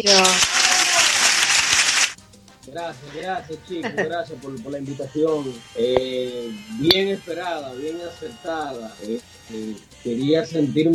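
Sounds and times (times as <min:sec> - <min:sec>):
speech: 0:00.0 - 0:00.6, 0:02.8 - 0:10.9
played applause sound effect: 0:00.0 - 0:02.2.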